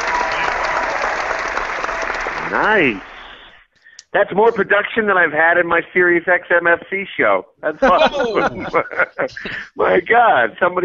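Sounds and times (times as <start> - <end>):
audience applause: 0.0 - 3.5
speech: 2.5 - 3.1, 4.1 - 10.8
laughter: 7.7 - 10.1.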